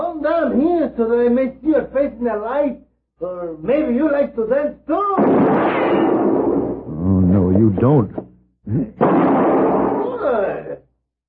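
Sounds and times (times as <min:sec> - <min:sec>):
speech: 0:00.2 - 0:06.1, 0:07.5 - 0:09.6
gunshot knocking a pistol from a man's hand: 0:05.1 - 0:06.9, 0:09.0 - 0:10.2.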